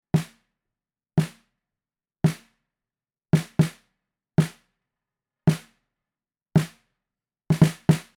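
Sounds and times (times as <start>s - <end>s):
snare drum: 0.2s - 0.4s, 1.2s - 1.4s, 2.3s - 2.5s, 3.4s - 3.8s, 4.4s - 4.6s, 5.5s - 5.7s, 6.6s - 6.8s, 7.5s - 8.1s.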